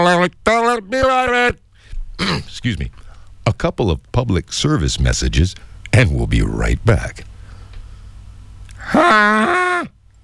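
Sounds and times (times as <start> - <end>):
speech: 0.0 - 1.6, 2.2 - 7.3, 8.9 - 10.0
person imitating an albatross call: 8.8 - 9.9.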